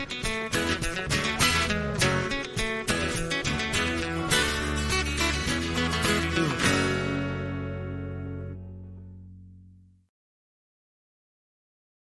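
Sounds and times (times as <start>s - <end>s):
traditional pop music: 0.0s - 9.0s.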